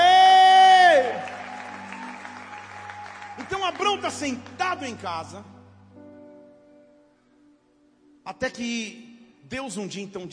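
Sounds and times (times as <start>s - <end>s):
audience applauding and cheering: 0.0s - 5.3s
speech: 4.0s - 5.6s, 8.3s - 10.3s.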